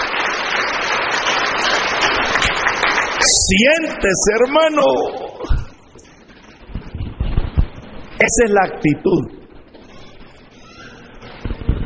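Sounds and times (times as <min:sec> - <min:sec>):
audience applause: 0:00.0 - 0:05.4
speech: 0:03.2 - 0:05.6, 0:08.2 - 0:09.4.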